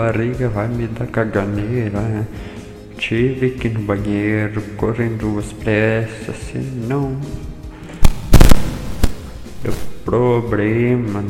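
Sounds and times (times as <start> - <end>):
speech: 0.0 - 7.5, 9.6 - 11.2
explosion sound effect: 8.0 - 9.9.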